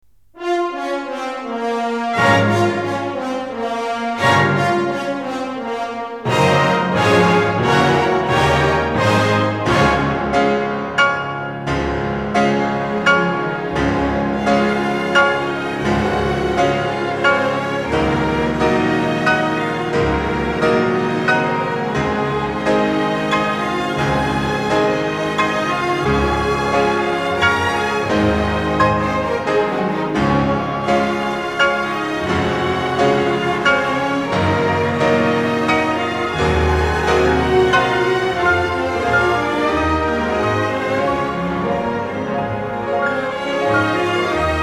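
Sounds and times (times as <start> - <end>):
piano concerto: 0.0 - 44.6.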